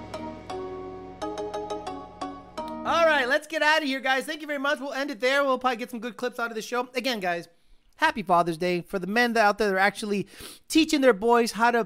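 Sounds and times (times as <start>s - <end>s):
Chinese gong meme sound effect: 0.0s - 2.9s
speech: 2.9s - 11.8s.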